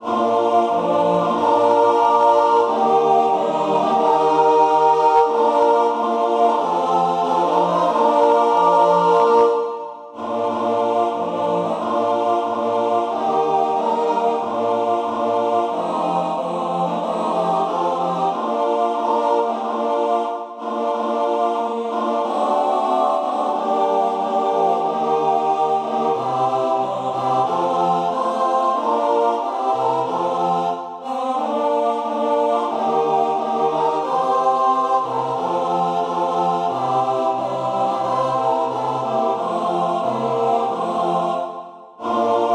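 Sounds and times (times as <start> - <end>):
four-part mixed choir singing: 0.0 - 42.5.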